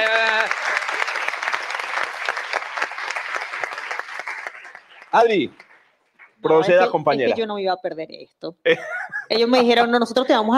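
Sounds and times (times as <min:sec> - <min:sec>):
audience applause: 0:00.0 - 0:05.8
speech: 0:05.2 - 0:05.6, 0:06.4 - 0:10.5
laughter: 0:08.7 - 0:09.5.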